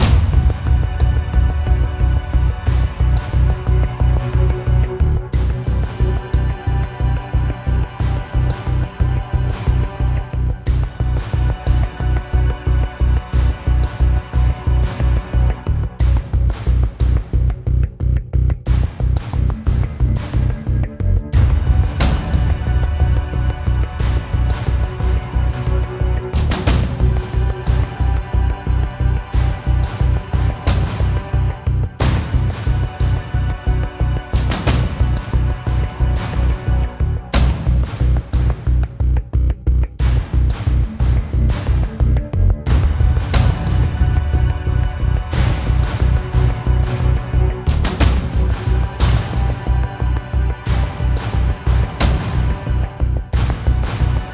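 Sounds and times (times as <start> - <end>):
industrial combat music: 0.0 - 54.3.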